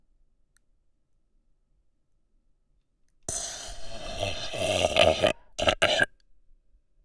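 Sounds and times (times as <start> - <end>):
burp: 3.3 - 6.1
sleeping breathing: 3.3 - 6.1.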